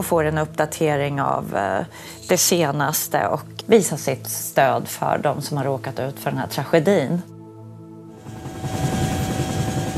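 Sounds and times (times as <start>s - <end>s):
speech: 0.0s - 7.3s
helicopter flying over a large fire: 8.1s - 9.9s.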